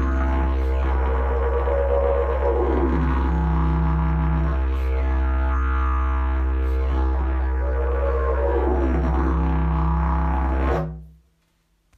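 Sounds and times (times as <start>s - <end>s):
javor didgeridoo: 0.0s - 11.1s.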